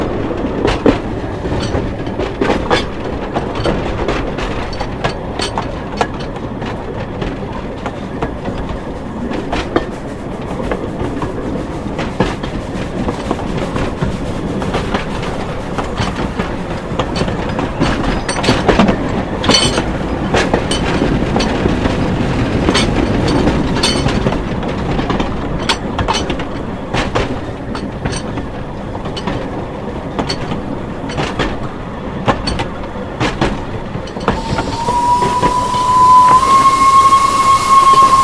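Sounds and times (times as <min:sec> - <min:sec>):
Kraus 0-2-0 steam locomotive from 1906: 0:00.0 - 0:38.2.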